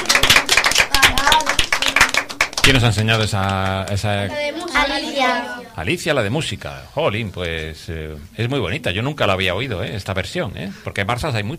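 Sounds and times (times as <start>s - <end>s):
children applauding themselves: 0.0s - 4.0s
speech: 2.7s - 11.5s.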